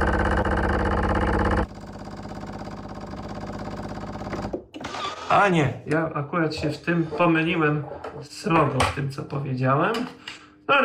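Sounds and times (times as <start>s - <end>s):
large espresso machine pumping water: 0.0s - 3.6s
speech: 5.3s - 10.8s.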